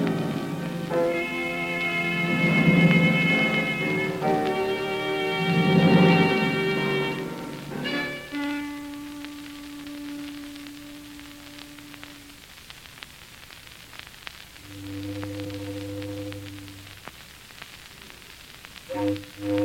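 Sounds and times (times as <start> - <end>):
mournful foghorn sounding in fog: 0.0 - 12.3, 14.6 - 17.0, 18.9 - 19.6
constant crackling hiss: 0.0 - 19.6.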